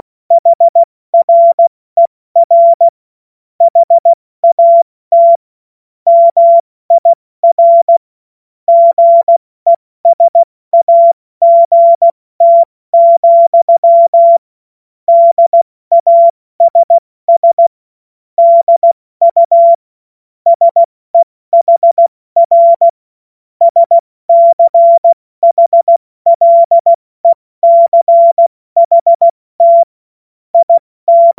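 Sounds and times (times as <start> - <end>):
CW Morse code beeps: 0.3 - 1.7, 2.4 - 2.9, 3.6 - 5.4, 6.1 - 8.0, 8.7 - 14.4, 15.1 - 17.7, 18.4 - 19.8, 20.5 - 23.0, 23.6 - 29.9, 30.6 - 31.3.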